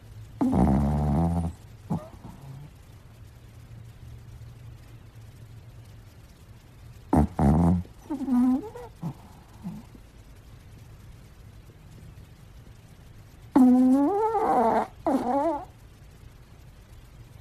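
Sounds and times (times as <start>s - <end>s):
dog snoring: 0.4s - 2.8s, 7.1s - 10.0s, 13.5s - 15.8s.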